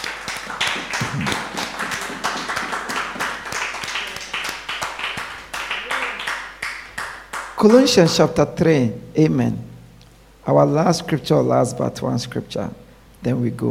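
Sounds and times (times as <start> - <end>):
crowd clapping: 0.0 - 8.2
speech: 7.6 - 9.7, 10.4 - 13.6.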